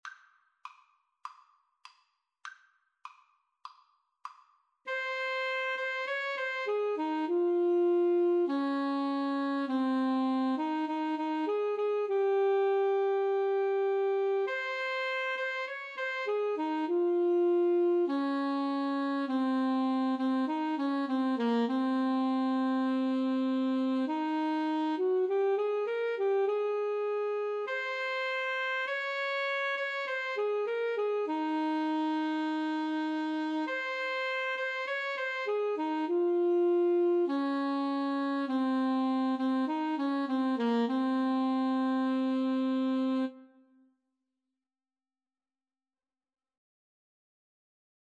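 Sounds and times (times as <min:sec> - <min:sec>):
alto saxophone duet: 0:04.9 - 0:43.8.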